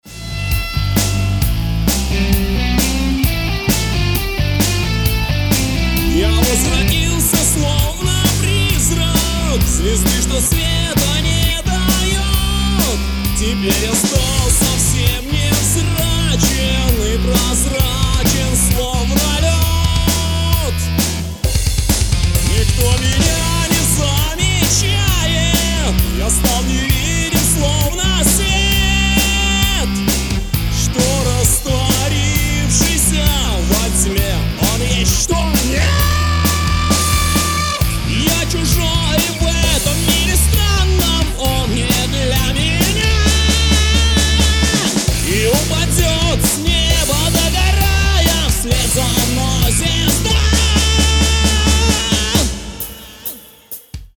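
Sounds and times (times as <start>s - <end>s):
rock music: 0.0s - 54.1s.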